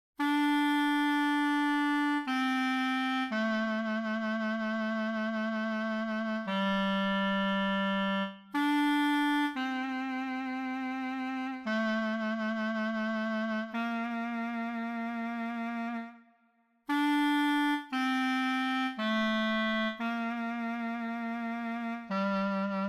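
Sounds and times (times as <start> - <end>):
clarinet: 0.2 - 22.8.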